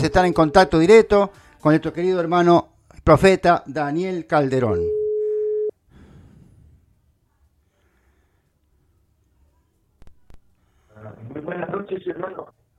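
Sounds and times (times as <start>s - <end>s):
speech: 0.0s - 5.0s, 11.3s - 12.6s
telephone tone as a call is placed: 4.9s - 5.7s
faint breathing: 5.2s - 8.9s, 10.5s - 11.0s.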